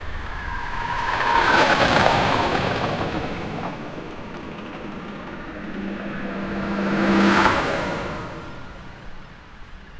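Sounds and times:
big trucks speeding: 0.1s - 9.9s.

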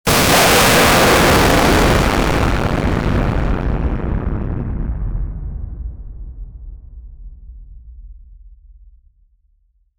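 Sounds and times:
sonic boom of a jet breaking the sound barrier: 0.0s - 6.4s.

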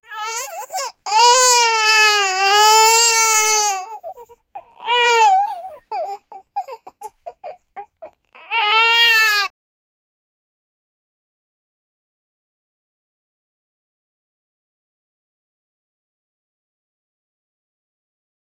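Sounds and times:
small baby crying: 0.0s - 9.5s.

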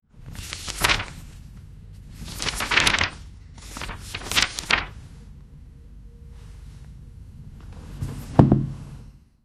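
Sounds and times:
pages turning: 0.2s - 5.0s.

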